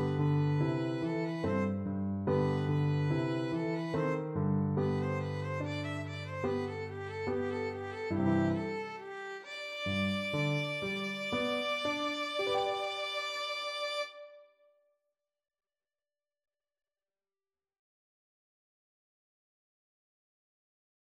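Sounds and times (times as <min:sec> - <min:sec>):
violin and viola duet: 0:00.0 - 0:14.5.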